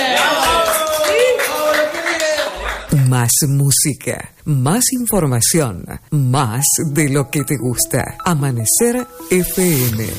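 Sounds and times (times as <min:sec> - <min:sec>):
applause: 0:00.0 - 0:02.9
speech: 0:03.3 - 0:10.1.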